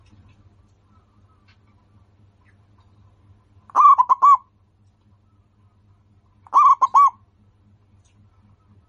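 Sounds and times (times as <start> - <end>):
local-strain zebra dove singing: 3.7 - 4.5, 6.4 - 7.2.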